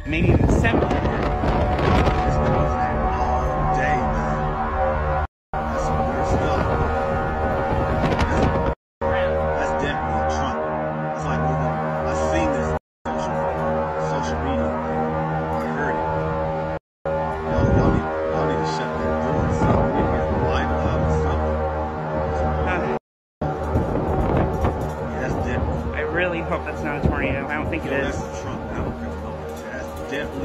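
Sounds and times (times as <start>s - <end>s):
gusty wind rumble: 0.0s - 8.8s, 17.4s - 18.2s, 19.1s - 21.1s, 23.4s - 29.1s
strange trumpet sound during approaching storm: 0.0s - 30.4s.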